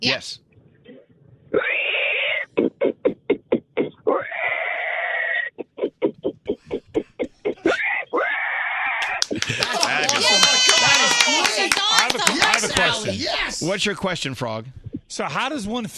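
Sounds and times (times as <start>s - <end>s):
speech: 0.0s - 0.4s, 11.3s - 15.9s
person imitating pig squeals: 0.9s - 9.3s
laughter: 9.0s - 13.6s.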